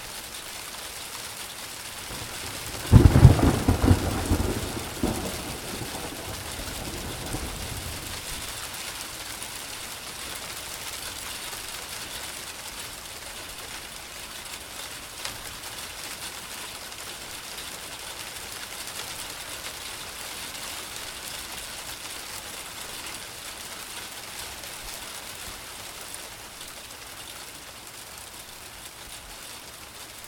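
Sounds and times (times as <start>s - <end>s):
hailstorm: 0.1s - 30.2s
thunder claps: 2.1s - 8.3s.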